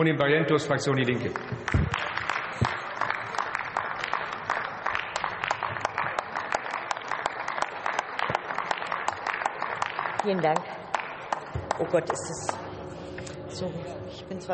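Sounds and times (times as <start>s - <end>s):
speech: 0.0s - 2.8s, 10.3s - 10.8s, 11.8s - 12.6s, 13.6s - 14.5s
applause from the whole hall: 1.4s - 12.6s.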